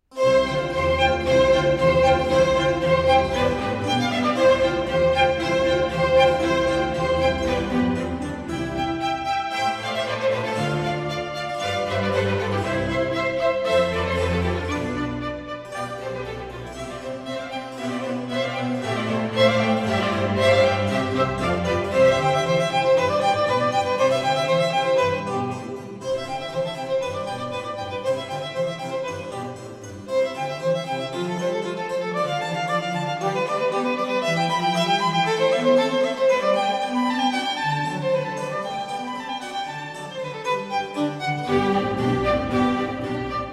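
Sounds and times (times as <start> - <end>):
violin concerto in C major allegro: 0.0 - 43.5.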